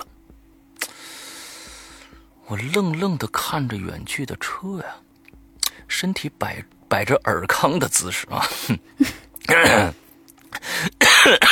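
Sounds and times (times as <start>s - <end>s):
speech: 2.5s - 5.1s, 5.9s - 10.0s, 10.8s - 11.5s
person coughing: 8.6s - 10.0s, 10.7s - 11.5s
person clearing throat: 9.0s - 10.0s, 11.0s - 11.5s.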